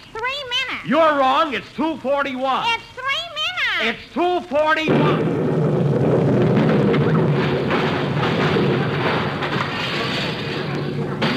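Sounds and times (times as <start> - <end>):
speech: 0.8 - 2.9, 3.8 - 5.4
time bomb explosion radio comedy sound effect: 4.9 - 11.3.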